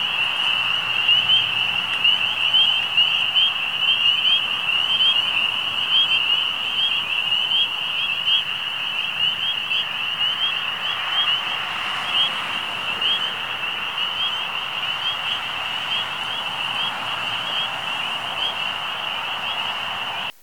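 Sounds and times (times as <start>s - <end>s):
amphibians calling: 0.0s - 20.3s
trucks: 0.0s - 20.4s.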